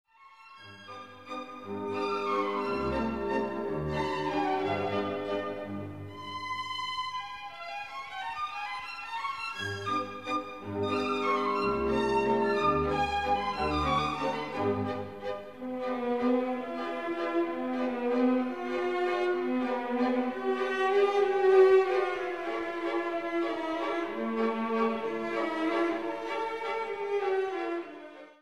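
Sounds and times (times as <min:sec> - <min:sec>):
opera waltz: 0:00.2 - 0:28.4.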